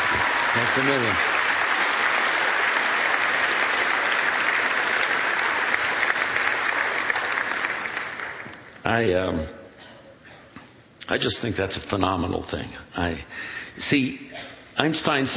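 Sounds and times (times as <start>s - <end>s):
room full of people in sustained applause: 0.0s - 8.8s
speech: 0.6s - 1.3s, 8.9s - 9.6s, 11.1s - 15.3s.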